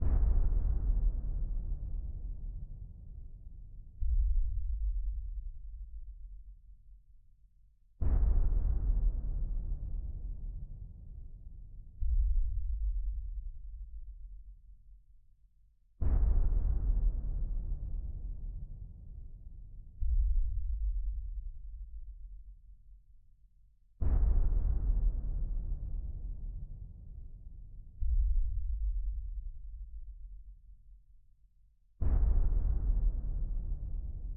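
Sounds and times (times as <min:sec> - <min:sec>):
interactive music: 0:00.0 - 0:34.3.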